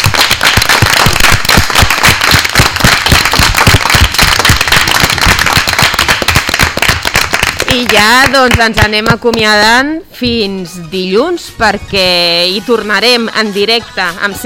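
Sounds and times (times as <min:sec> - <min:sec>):
applause: 0:00.0 - 0:09.1
speech: 0:07.9 - 0:14.4.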